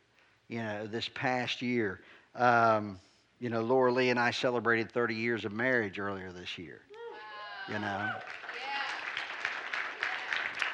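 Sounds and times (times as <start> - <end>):
speech: 0.5 - 6.9, 7.7 - 8.8
soft audience applause: 7.6 - 10.7.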